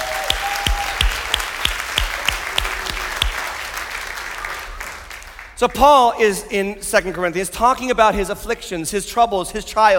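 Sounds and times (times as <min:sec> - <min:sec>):
church congregation in North Attleboro applauding to welcome the Taunton campus: 0:00.0 - 0:05.6
speech: 0:05.6 - 0:09.9.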